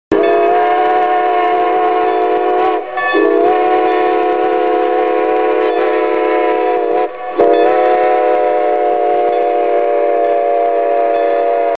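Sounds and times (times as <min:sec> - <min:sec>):
horn: 0:00.1 - 0:11.7.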